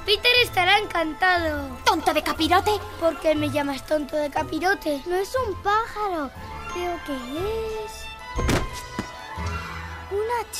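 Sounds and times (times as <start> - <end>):
speech: 0.1 - 8.9, 10.1 - 10.5
arrow striking with a sharp thunk: 8.4 - 9.2.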